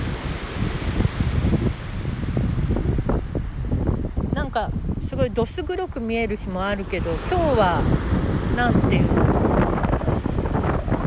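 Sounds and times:
waves washing in at a seaside beach: 0.0s - 11.0s
wind blowing against the microphone at a seaside beach: 0.0s - 11.0s
speech: 4.6s - 9.4s.

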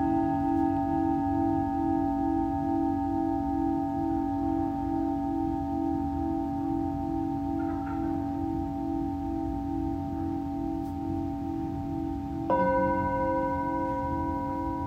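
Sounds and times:
Tibetan singing bowl ringing: 0.0s - 14.8s.

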